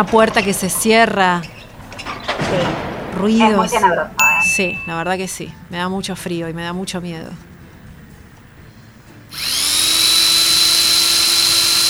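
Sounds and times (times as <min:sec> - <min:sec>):
speech: 0:00.0 - 0:01.5, 0:02.5 - 0:07.5
powerful electric saw running: 0:09.3 - 0:11.8.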